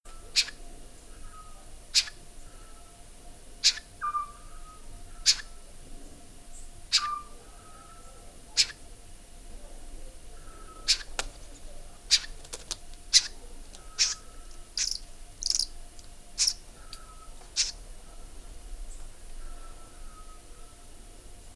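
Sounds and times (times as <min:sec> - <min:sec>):
Otus scops calling: 0:00.1 - 0:03.0, 0:03.6 - 0:05.7, 0:06.5 - 0:09.0, 0:10.3 - 0:11.4, 0:12.0 - 0:18.3, 0:18.9 - 0:20.9.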